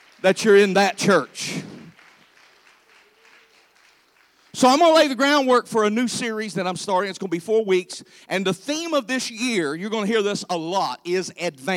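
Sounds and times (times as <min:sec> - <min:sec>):
audience hand clapping applause: 0:00.0 - 0:05.5
speech: 0:00.2 - 0:01.7, 0:04.6 - 0:11.7.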